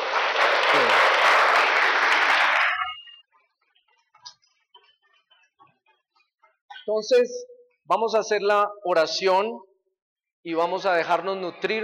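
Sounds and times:
church congregation applause during a sermon: 0:00.0 - 0:03.2
speech: 0:06.9 - 0:09.7, 0:10.4 - 0:11.8.

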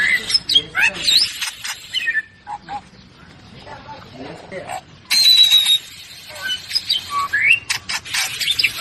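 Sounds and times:
birds chirping and squealing: 0:00.0 - 0:08.7.

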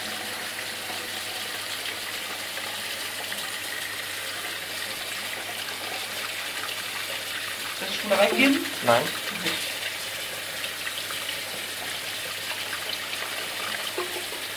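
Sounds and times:
canned beans rinsed under cold tap water: 0:00.0 - 0:14.5
speech: 0:07.9 - 0:09.6.

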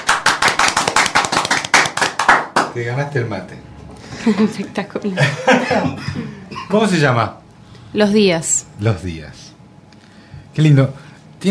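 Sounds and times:
hand clapping: 0:00.0 - 0:02.8
speech: 0:02.8 - 0:09.4, 0:10.6 - 0:11.4
laughter: 0:04.1 - 0:06.8.

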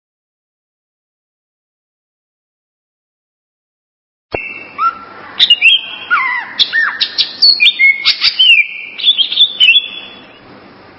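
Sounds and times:
greater green leafbird song: 0:04.3 - 0:10.5.

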